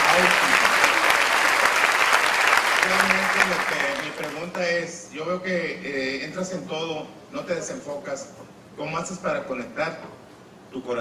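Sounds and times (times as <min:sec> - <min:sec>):
audience applause: 0:00.0 - 0:04.6
speech: 0:04.2 - 0:10.9.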